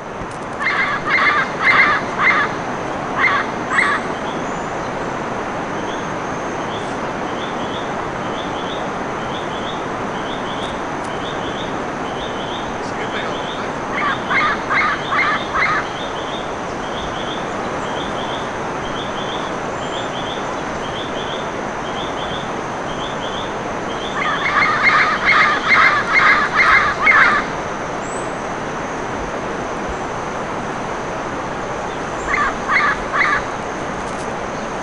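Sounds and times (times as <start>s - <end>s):
background hiss: 0.0s - 34.8s
bird honking calls: 0.6s - 4.3s, 8.5s - 21.4s, 23.0s - 27.6s, 32.2s - 33.5s.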